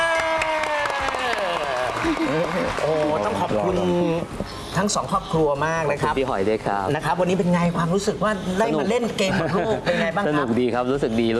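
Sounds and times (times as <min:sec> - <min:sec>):
audience applause for a team on a Thai TV game show: 0:00.0 - 0:03.8
speech: 0:02.0 - 0:11.3.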